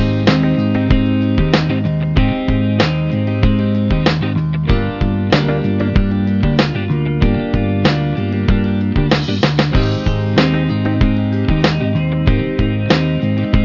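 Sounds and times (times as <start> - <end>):
stylish blues-based solo: 0.0 - 13.6.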